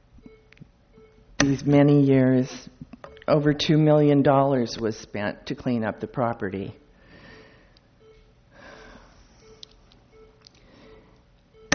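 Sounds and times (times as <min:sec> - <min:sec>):
electronic beeping in the room: 0:00.2 - 0:02.0, 0:03.0 - 0:03.7, 0:07.3 - 0:11.7
speech: 0:01.5 - 0:06.8.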